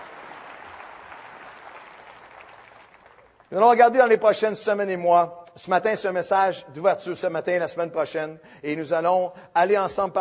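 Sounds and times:
audience applause: 0.0s - 3.5s
speech: 3.5s - 10.1s.

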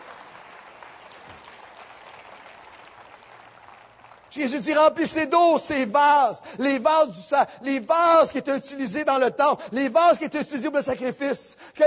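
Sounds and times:
audience applauding: 0.0s - 4.8s
speech: 4.4s - 11.8s.

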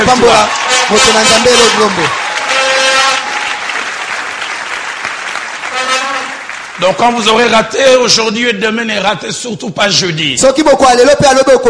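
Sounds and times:
congregation applause in a church: 0.0s - 8.1s
speech: 0.1s - 2.2s, 6.8s - 11.6s.

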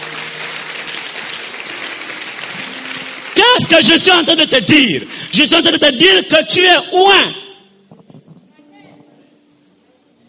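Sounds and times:
congregation applauding and cheering during a church service: 0.0s - 7.6s
speech: 3.7s - 7.4s.

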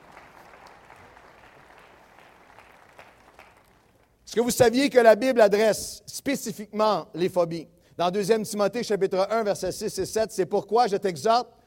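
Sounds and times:
audience applauding: 0.0s - 4.2s
speech: 4.4s - 11.6s.

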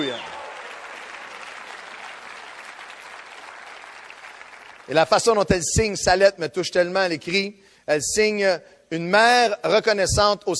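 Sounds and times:
audience applauding: 0.0s - 5.1s
speech: 4.9s - 10.5s.

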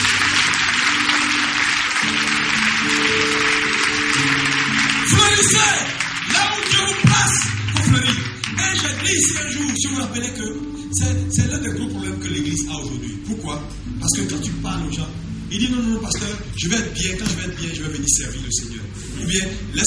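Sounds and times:
church congregation applauding: 0.0s - 10.3s
speech: 10.1s - 19.8s.

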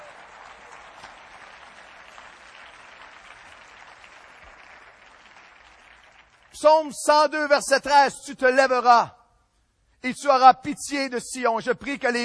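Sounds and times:
audience applauding loudly: 0.0s - 6.7s
speech: 6.6s - 9.2s, 10.0s - 12.2s.

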